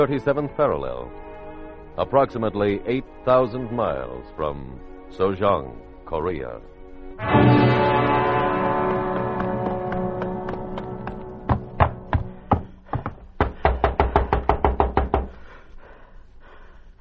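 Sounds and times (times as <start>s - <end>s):
speech: 0.0s - 1.3s, 2.0s - 8.2s
sustained droning tone: 7.2s - 12.5s
loud knocking on a door: 11.5s - 15.4s.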